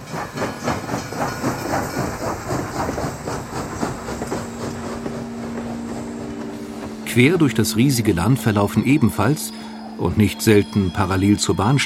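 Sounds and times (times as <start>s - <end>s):
steam train hiss: 0.0s - 10.1s
steam train chugging along the rails: 0.0s - 11.8s
steam train wheels clattering on rails: 0.0s - 11.8s
low sustained tone: 3.8s - 11.8s
speech: 7.1s - 11.8s.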